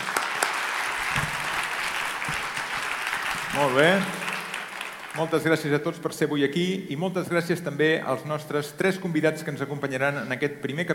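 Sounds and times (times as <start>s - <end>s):
live audience applause: 0.0s - 5.5s
speech: 3.6s - 4.2s, 5.2s - 10.9s.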